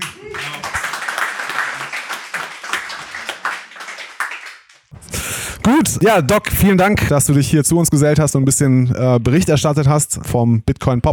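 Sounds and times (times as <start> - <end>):
live audience applause: 0.0 - 6.2
speech: 5.7 - 11.1.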